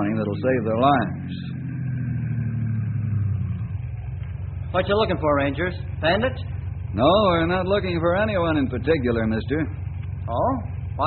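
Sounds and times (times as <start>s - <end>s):
speech: 0.0s - 1.6s, 4.7s - 11.0s
car engine droning on a road: 0.0s - 11.0s.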